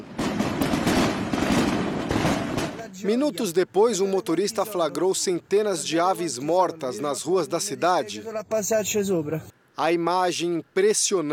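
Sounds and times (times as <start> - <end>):
fireworks exploding during New Year celebration: 0.0 - 2.9
speech: 3.0 - 11.3.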